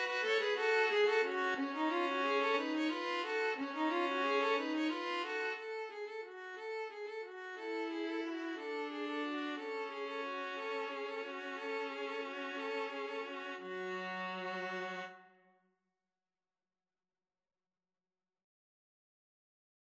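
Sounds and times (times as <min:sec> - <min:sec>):
string trio playing a Christmas carol: 0:00.0 - 0:05.8, 0:06.4 - 0:15.1.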